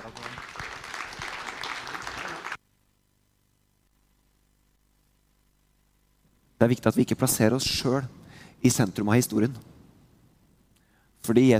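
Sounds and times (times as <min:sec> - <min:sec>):
audience applause: 0:00.0 - 0:02.6
speech: 0:06.6 - 0:09.7, 0:11.2 - 0:11.5.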